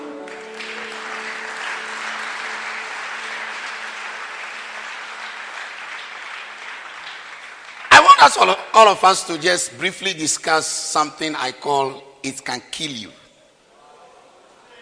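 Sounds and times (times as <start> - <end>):
audience clapping: 0.0 - 9.2
speech: 8.2 - 13.2.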